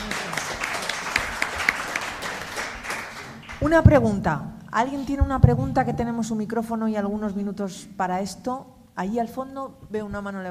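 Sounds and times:
audience applause: 0.0s - 3.6s
speech: 3.6s - 10.4s.

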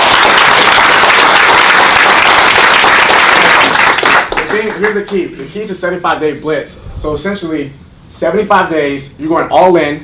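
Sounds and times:
marketing event audience clapping in Las Vegas: 0.0s - 5.5s
speech: 4.8s - 10.0s.

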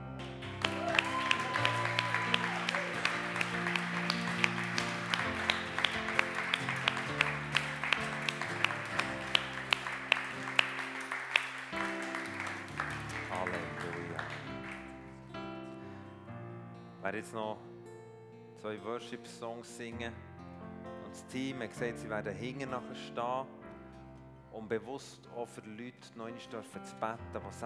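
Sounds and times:
audience applause: 0.0s - 15.2s
speech: 17.1s - 17.7s, 18.6s - 20.2s, 21.3s - 23.6s, 24.6s - 27.6s.

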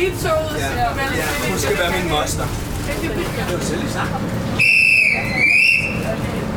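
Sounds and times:
crowd murmur: 0.0s - 6.5s
speech: 0.0s - 6.5s
train departure whistle: 4.6s - 6.0s.

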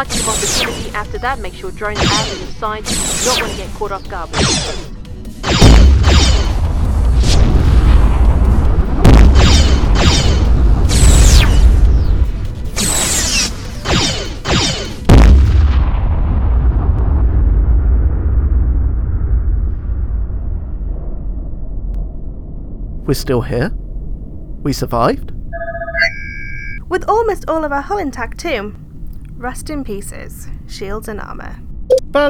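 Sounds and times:
speech: 0.0s - 5.7s, 23.1s - 23.8s, 24.6s - 25.3s, 26.9s - 28.8s, 29.4s - 31.6s
sci-fi weapons fire in space battle: 1.9s - 3.7s, 4.3s - 20.3s.

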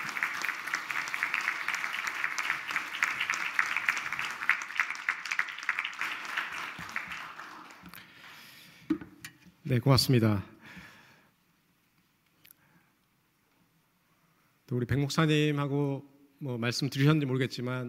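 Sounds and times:
applause: 0.0s - 8.6s
speech: 9.7s - 10.5s, 14.7s - 17.8s.

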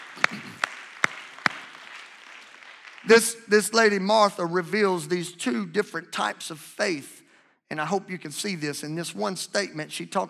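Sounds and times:
audience clapping hands: 0.0s - 4.8s
speech: 3.1s - 10.2s.

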